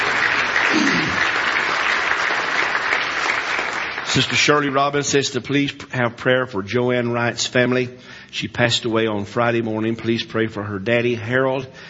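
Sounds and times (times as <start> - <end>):
audience hand clapping: 0.0 - 5.0
speech: 4.2 - 11.8.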